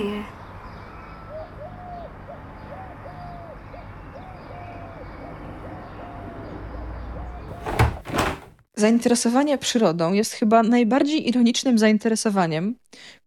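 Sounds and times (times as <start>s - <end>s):
sparrows chirping: 0.0s - 7.6s
city traffic rumble: 0.0s - 7.9s
speech: 8.8s - 13.2s.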